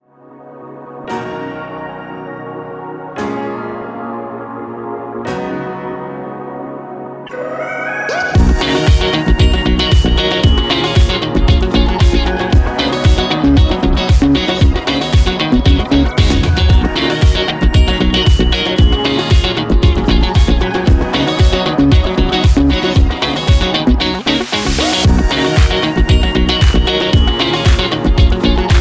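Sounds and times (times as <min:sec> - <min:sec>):
chic alternative rhythm music at 115 BPM: 0:08.2 - 0:28.7.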